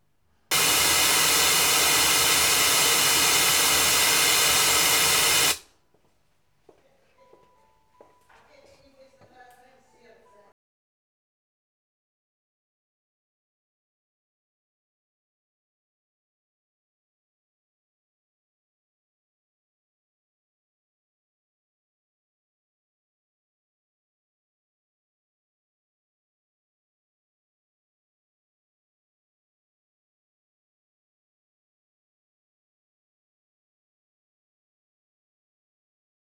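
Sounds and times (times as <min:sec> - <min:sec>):
white noise in an announcer booth: 0:00.5 - 0:05.6.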